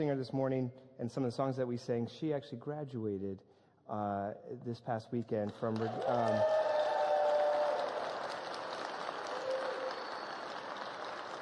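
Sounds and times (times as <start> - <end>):
speech: 0.0 - 6.8
church congregation clapping for a graduate during a worship service: 5.4 - 11.3.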